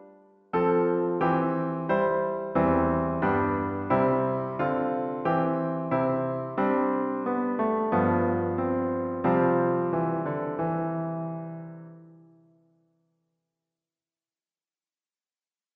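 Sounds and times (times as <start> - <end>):
baroque suite in C major for piano: 0.6 - 12.2.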